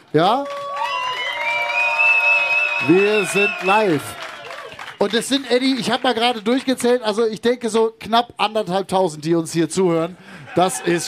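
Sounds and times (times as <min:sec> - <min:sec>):
speech: 0:00.1 - 0:00.6, 0:02.8 - 0:04.2, 0:05.0 - 0:11.0
live audience applauding loudly: 0:00.2 - 0:07.0, 0:10.4 - 0:11.0
laughter: 0:10.1 - 0:11.0.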